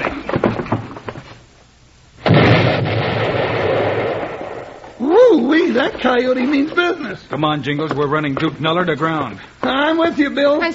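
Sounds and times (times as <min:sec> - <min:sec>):
dynamite explosion: 0:02.2 - 0:05.0
speech: 0:05.8 - 0:10.7.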